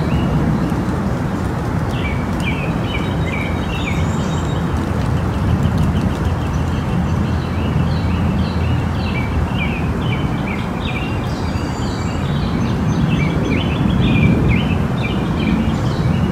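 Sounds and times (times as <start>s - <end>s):
birds chirping: 0.0s - 16.3s
steady low wind roar: 0.0s - 16.3s.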